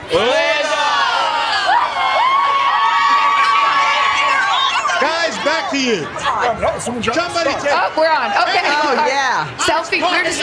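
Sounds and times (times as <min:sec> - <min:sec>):
speech: 0:00.1 - 0:00.3, 0:05.6 - 0:10.4
big crowd cheering: 0:00.1 - 0:06.1
laughter: 0:02.8 - 0:09.3.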